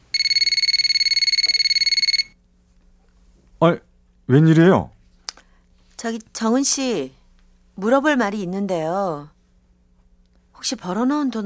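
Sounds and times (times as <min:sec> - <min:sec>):
telephone ringing with rapid electronic trill: 0:00.1 - 0:02.4
speech: 0:03.6 - 0:04.9, 0:06.0 - 0:07.2, 0:07.8 - 0:09.4, 0:10.6 - 0:11.4.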